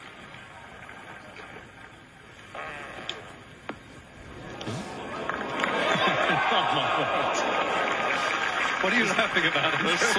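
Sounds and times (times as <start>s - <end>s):
fart during a golf broadcast: 2.5s - 3.4s, 4.5s - 5.2s
laughter: 4.9s - 8.5s
speech: 8.8s - 10.1s.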